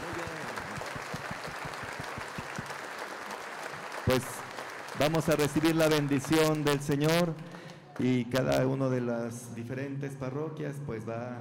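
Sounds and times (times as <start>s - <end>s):
applause: 0.0s - 8.6s
speech: 4.1s - 4.4s, 5.0s - 11.3s.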